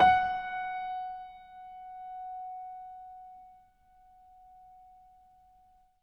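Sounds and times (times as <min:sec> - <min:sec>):
acoustic piano: 0:00.0 - 0:03.4.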